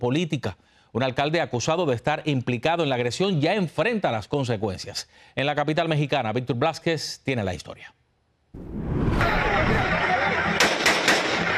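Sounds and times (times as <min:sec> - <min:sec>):
speech: 0:00.0 - 0:10.0
laughter: 0:09.2 - 0:11.5
assault rifle gunshots fired into the air: 0:10.6 - 0:11.5.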